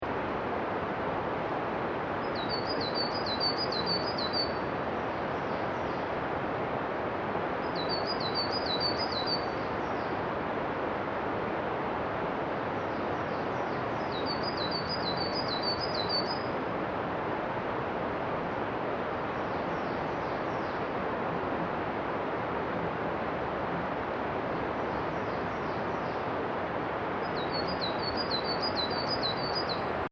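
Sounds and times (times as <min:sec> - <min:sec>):
distant river in Akita: 0:00.0 - 0:30.0
forest birds in Akita: 0:02.2 - 0:06.2, 0:07.6 - 0:10.3, 0:12.7 - 0:16.6, 0:19.3 - 0:21.0, 0:24.5 - 0:30.0.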